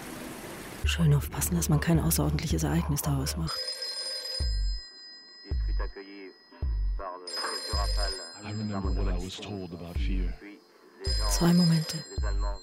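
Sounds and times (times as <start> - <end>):
speech: 0.9 - 3.8, 8.7 - 12.6
telephone ringing: 3.3 - 12.6.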